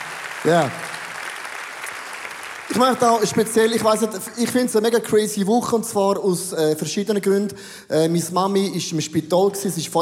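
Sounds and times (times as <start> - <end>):
audience applause: 0.0 - 4.6
speech: 0.4 - 0.8, 2.7 - 9.9.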